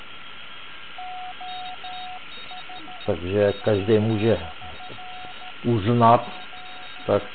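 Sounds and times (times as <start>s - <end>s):
faint constant whine: 0.0s - 7.3s
shortwave receiver hiss: 0.0s - 7.3s
Morse-like beeps of amateur radio transmission: 1.0s - 7.3s
speech: 3.1s - 4.6s, 5.6s - 6.4s, 7.1s - 7.3s.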